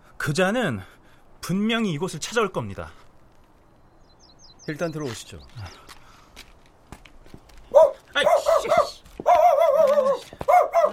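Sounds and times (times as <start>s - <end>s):
speech: 0.2s - 0.9s, 1.5s - 3.0s, 4.7s - 5.9s
dog barking: 7.7s - 10.9s.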